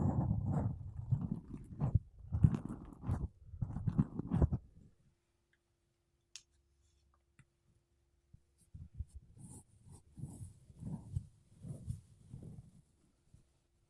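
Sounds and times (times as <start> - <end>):
makeup brushes and a sponge rubbing against a microphone: 0.0 - 4.7, 8.6 - 13.5.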